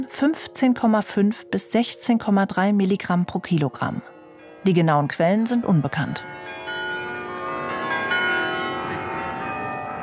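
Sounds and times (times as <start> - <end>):
speech: 0.0 - 6.6
carillon bells ringing: 3.8 - 10.0.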